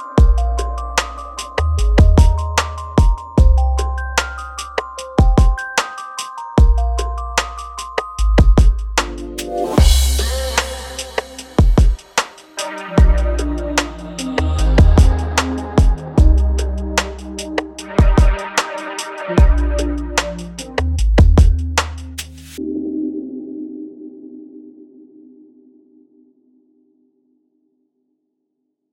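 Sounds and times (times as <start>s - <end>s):
mellow beats: 0.0s - 22.6s.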